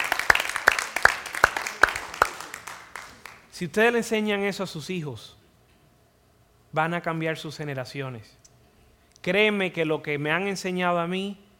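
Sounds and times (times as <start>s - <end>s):
audience applause: 0.0s - 3.5s
loud sharp claps: 0.0s - 3.5s
speech: 3.6s - 5.4s, 6.8s - 8.4s, 9.2s - 11.4s.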